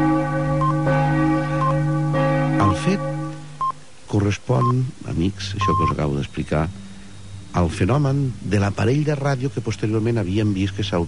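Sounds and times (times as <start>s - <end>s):
wall clock striking six o'clock: 0.0s - 3.7s
speech: 2.8s - 3.2s, 4.1s - 6.8s, 7.6s - 11.0s.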